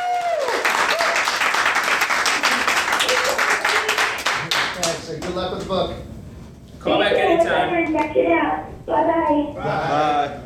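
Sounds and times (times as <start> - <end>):
applause for a caller: 0.0 - 5.4
speech: 5.4 - 6.1, 6.8 - 10.4.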